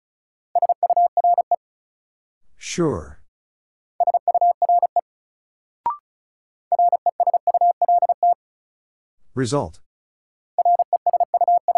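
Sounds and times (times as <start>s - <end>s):
Morse code tones at 35 wpm: 0.6s - 1.6s, 4.0s - 5.0s, 6.7s - 8.4s, 10.6s - 11.7s
speech: 2.6s - 3.2s, 9.4s - 9.9s.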